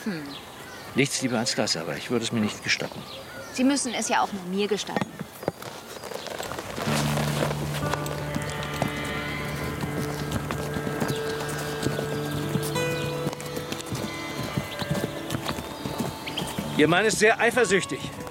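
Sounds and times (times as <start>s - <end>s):
speech: 0.0s - 5.2s, 16.8s - 18.2s
mare hooves clip-clopping while ridden: 4.3s - 18.3s
rustling: 5.4s - 16.8s.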